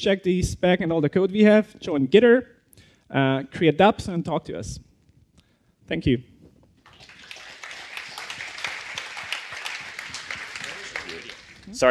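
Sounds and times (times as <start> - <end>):
speech: 0.0 - 4.9, 5.9 - 6.3, 11.7 - 11.8
audience applause: 6.9 - 11.8.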